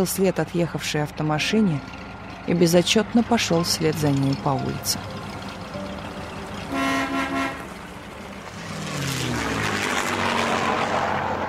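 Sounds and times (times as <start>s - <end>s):
speech: 0.0s - 5.3s
propeller airplane engine droning as it descends to land on a snow-covered airfield: 0.0s - 11.4s
short sustained horn-like toot: 6.7s - 7.7s.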